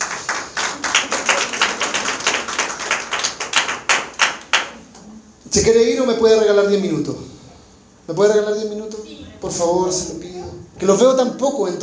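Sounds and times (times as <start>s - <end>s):
audience applause: 0.0s - 4.8s
speech: 5.5s - 7.3s, 8.1s - 11.8s.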